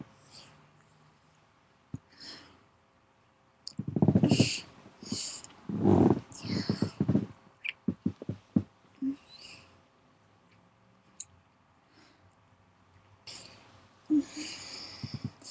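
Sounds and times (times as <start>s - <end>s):
woman vocalizing: 3.7s - 8.4s, 9.0s - 9.4s, 14.1s - 15.4s.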